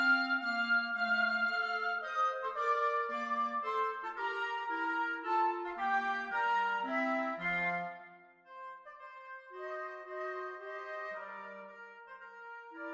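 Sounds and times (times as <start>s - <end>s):
woodwind trio playing a minuet: 0.0s - 12.9s.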